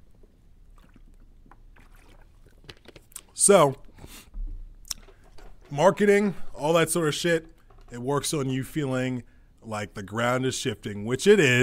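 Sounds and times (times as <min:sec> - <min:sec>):
person drinking water: 0:00.1 - 0:05.6
speech: 0:03.4 - 0:03.8, 0:05.7 - 0:11.6.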